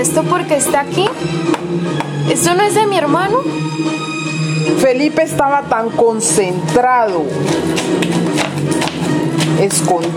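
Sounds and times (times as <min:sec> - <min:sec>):
speech: 0:00.0 - 0:08.3, 0:09.5 - 0:10.1
footsteps: 0:01.0 - 0:02.3, 0:06.6 - 0:10.1.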